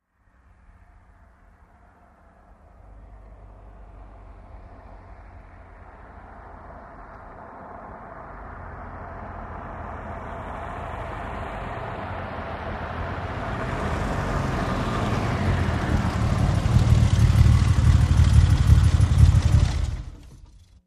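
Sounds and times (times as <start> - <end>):
Aston Martin car approaching slowly: 0.2 - 20.8
Aston Martin car engine switching off: 14.9 - 20.8.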